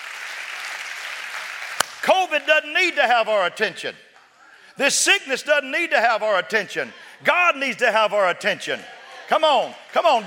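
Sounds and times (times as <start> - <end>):
audience clapping hands: 0.0 - 2.5, 9.5 - 10.2
speech: 2.0 - 4.1, 4.8 - 10.2.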